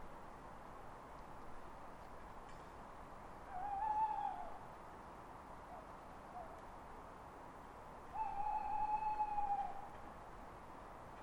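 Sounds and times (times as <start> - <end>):
owl wailing calls: 3.5 - 4.6, 8.1 - 9.9.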